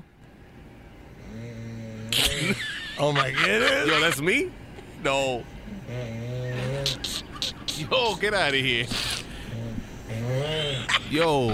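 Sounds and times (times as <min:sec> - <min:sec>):
man snoring: 0:01.2 - 0:02.5, 0:05.7 - 0:07.2, 0:08.9 - 0:11.0
laughter: 0:02.1 - 0:04.5, 0:06.4 - 0:09.3, 0:10.1 - 0:11.5
speech: 0:02.4 - 0:06.4, 0:07.8 - 0:09.2, 0:10.2 - 0:11.5.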